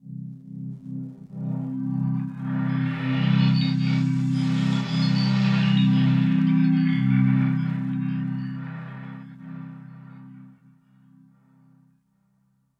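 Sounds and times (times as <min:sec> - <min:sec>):
ambient synth pad: 0:01.6 - 0:10.8.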